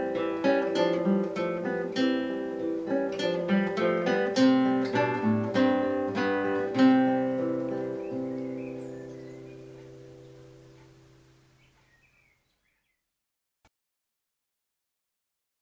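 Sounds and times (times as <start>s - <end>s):
instrumental piece: 0.0s - 11.2s.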